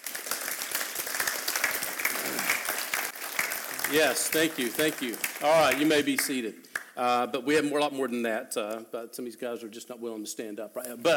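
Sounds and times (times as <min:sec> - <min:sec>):
applause: 0:00.0 - 0:07.0
speech: 0:03.9 - 0:11.1.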